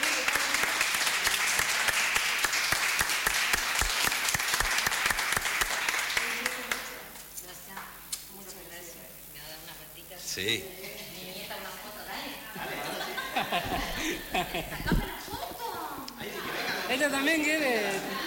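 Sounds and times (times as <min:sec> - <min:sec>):
applause: 0:00.0 - 0:07.0
speech: 0:10.4 - 0:10.8, 0:13.4 - 0:15.3, 0:16.9 - 0:18.2
laughter: 0:12.6 - 0:17.2.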